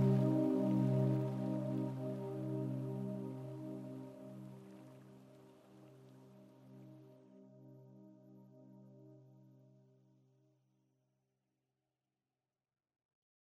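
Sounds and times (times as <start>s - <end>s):
baby lullaby piano: 0.0s - 4.7s.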